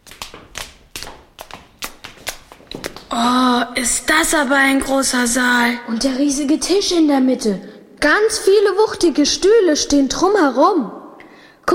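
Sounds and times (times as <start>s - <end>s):
hard-soled footsteps climbing stairs: 0.0s - 3.2s
speech: 3.1s - 11.0s.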